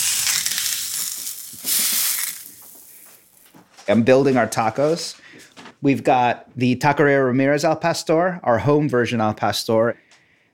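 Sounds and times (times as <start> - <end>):
damp corn tortilla sizzling on a hot surface: 0.0 - 3.5
speech: 3.9 - 5.2, 5.8 - 10.0.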